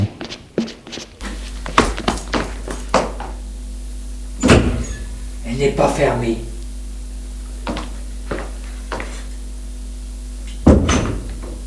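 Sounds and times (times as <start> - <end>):
steady low hum: 1.2 - 11.6
speech: 5.6 - 6.5
wooden clunks and knocks of a door being opened: 10.6 - 11.5.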